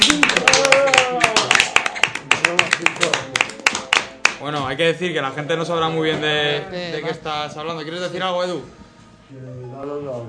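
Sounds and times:
audience applause: 0:00.0 - 0:04.4
speech: 0:04.8 - 0:10.2.

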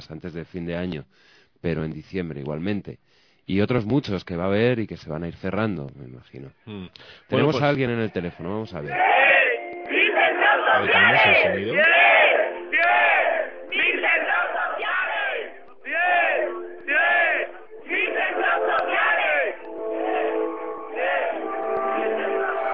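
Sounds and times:
speech: 0:00.0 - 0:09.2, 0:10.8 - 0:12.0
large crowd shouting and chanting: 0:08.0 - 0:22.7
music: 0:09.2 - 0:10.8, 0:11.8 - 0:22.7.

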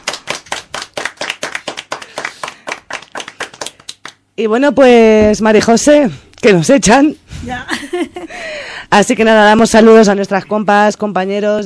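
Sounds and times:
hands clapping in applause for a winner: 0:00.0 - 0:04.2
speech: 0:04.4 - 0:11.6.

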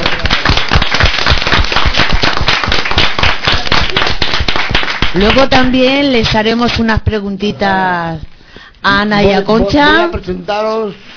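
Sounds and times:
audience applause: 0:00.0 - 0:05.6
speech: 0:05.2 - 0:11.1.

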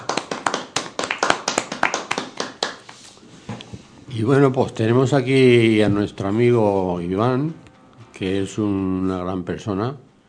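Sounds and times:
applause clapping: 0:00.0 - 0:03.0
speech: 0:04.1 - 0:07.6, 0:08.2 - 0:10.0.

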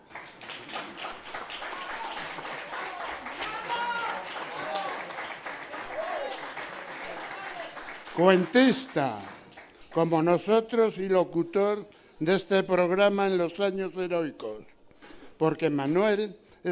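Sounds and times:
crowd applauding: 0:00.0 - 0:10.2
speech: 0:08.2 - 0:09.3, 0:10.0 - 0:14.7, 0:15.4 - 0:16.7.

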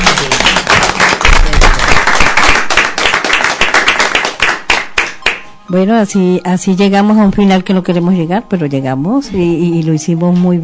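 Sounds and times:
crowd applauding: 0:00.0 - 0:05.4
speech: 0:05.7 - 0:10.6.

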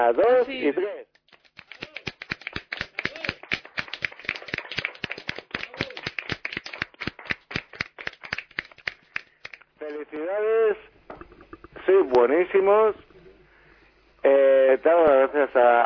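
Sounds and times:
speech: 0:00.0 - 0:01.1, 0:12.2 - 0:13.1, 0:14.2 - 0:15.8
group clapping together: 0:01.1 - 0:09.7.

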